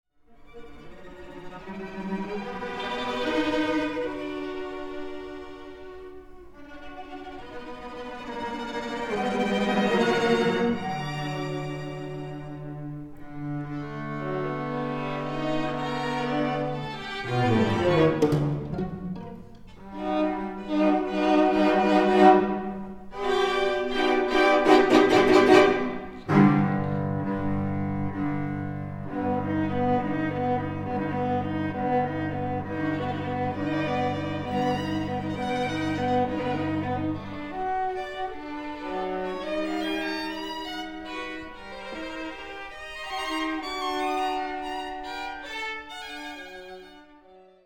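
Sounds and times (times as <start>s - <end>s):
string quartet: 0.2s - 47.6s.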